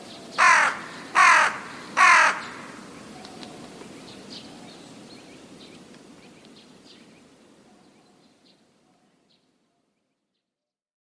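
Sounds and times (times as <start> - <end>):
rook cawing: 0.4 - 3.0.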